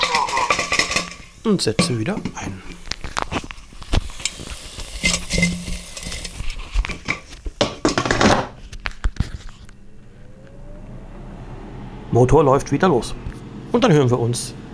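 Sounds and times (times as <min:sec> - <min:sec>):
pan scraping and clinking knocks: 0:00.0 - 0:08.5
speech: 0:01.4 - 0:02.7, 0:12.2 - 0:14.6
food sizzling in a swirled pan: 0:02.7 - 0:06.8.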